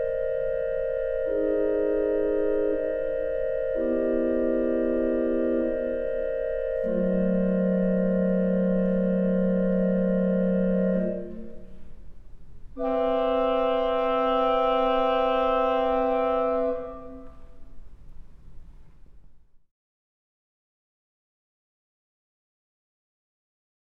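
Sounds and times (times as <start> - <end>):
oboe: 0.0 - 11.8, 12.8 - 17.7.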